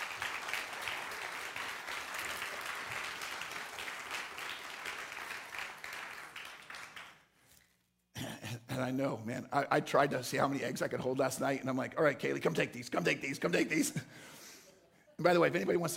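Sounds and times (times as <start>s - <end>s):
audience applause: 0.0s - 7.3s
speech: 8.8s - 14.3s, 15.2s - 15.9s.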